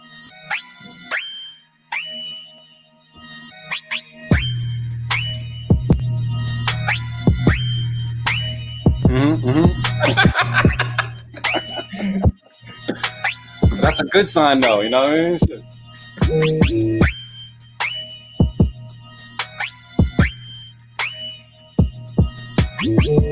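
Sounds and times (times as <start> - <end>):
drill music beat: 3.7 - 23.2
laughter: 9.3 - 13.0
speech: 14.1 - 15.7.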